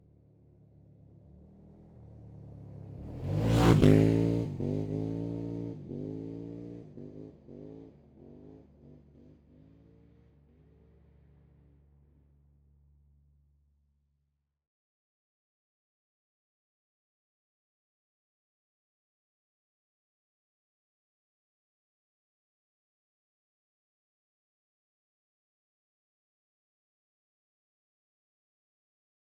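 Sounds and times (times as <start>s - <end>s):
Textron WildCat X off-road vehicle accelerating by, exterior: 1.4s - 11.7s.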